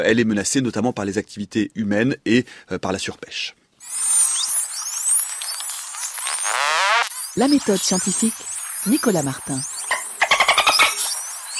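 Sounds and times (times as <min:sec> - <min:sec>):
speech: 0:00.0 - 0:04.1, 0:07.4 - 0:09.8
dolphin high-pitched whistles: 0:03.8 - 0:11.5.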